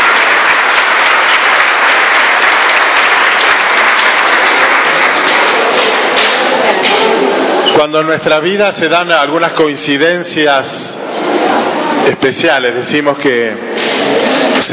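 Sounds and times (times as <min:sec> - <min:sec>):
audience applause: 0:00.0 - 0:07.6
speech: 0:07.8 - 0:11.0, 0:12.0 - 0:14.7.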